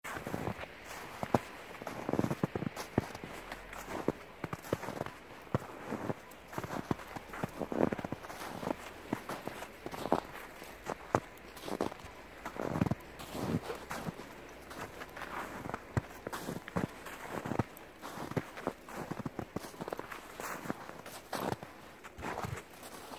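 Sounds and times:
man walking at night through a park: 0.1 - 23.1.

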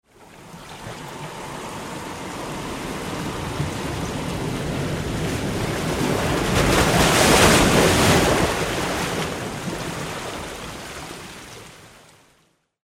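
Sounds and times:
high wave: 0.1 - 8.7.

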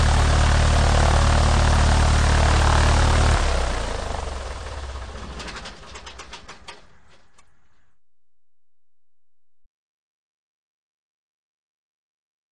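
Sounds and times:
biplane engine starting, running and stopping: 0.0 - 7.4.

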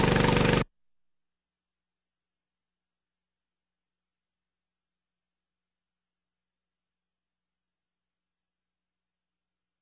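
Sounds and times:
pump switching on: 0.0 - 0.6.

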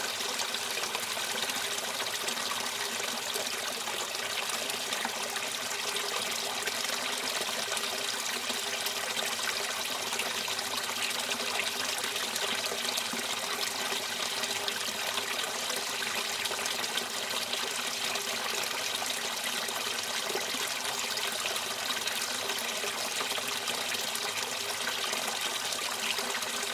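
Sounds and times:
stream of water pouring into a stone fountain basin: 0.0 - 26.7.

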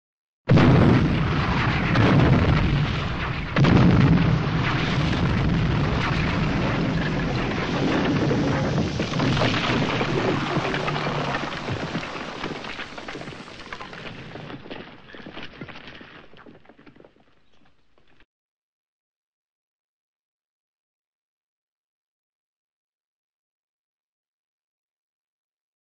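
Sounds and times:
rubble falling from a destroyed building: 0.5 - 18.3.

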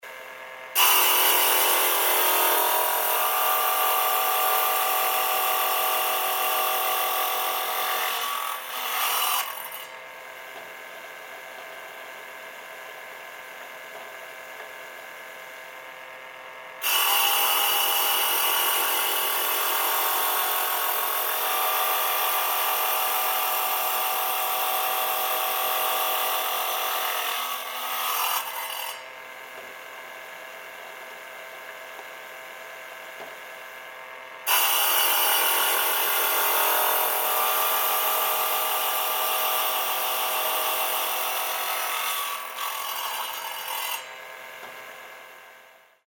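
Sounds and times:
tile cutter: 0.8 - 10.0, 16.8 - 29.8, 34.4 - 45.2.

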